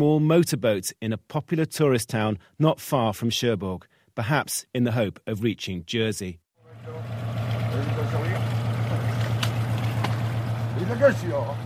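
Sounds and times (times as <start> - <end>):
speech: 0.0 - 7.2, 10.9 - 11.6
steady low engine drone by moored fishing boats: 6.6 - 11.6
faint indistinct voices: 6.7 - 11.6
splashing, lapping harbour water: 6.7 - 11.6.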